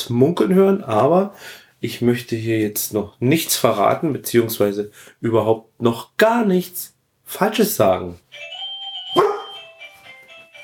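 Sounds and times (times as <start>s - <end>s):
speech: 0.0s - 8.5s
doorbell ringing: 8.4s - 10.6s
dog yelping: 9.1s - 9.6s
dog barking: 9.2s - 9.6s.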